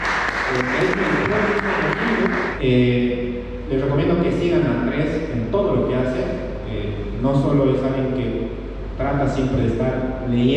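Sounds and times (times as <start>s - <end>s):
applause: 0.0s - 2.6s
speech: 0.5s - 1.8s, 2.6s - 10.5s.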